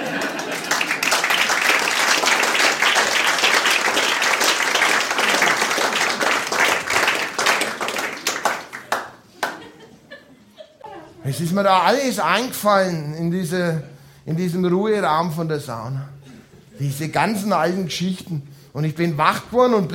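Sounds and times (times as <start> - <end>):
laughter: 0.0 - 1.6, 8.8 - 11.6
audience applause: 0.0 - 9.8
speech: 11.4 - 16.2, 16.8 - 19.9.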